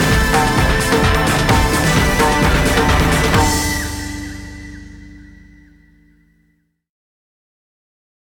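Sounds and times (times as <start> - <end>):
instrumental music: 0.0 - 6.4.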